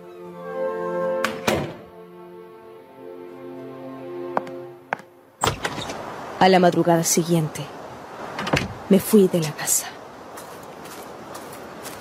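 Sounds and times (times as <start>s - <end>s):
bedroom door thudding shut: 1.2s - 1.8s, 5.4s - 6.0s, 8.4s - 8.8s
speech: 6.4s - 7.8s, 8.9s - 10.0s.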